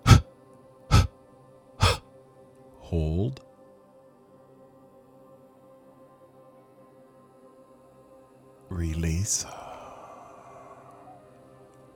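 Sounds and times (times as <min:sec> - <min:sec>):
short sharp breath spurts from a breathing exercise: 0:00.0 - 0:00.2, 0:00.9 - 0:01.1, 0:01.8 - 0:02.0
speech: 0:02.9 - 0:03.5, 0:08.8 - 0:09.6.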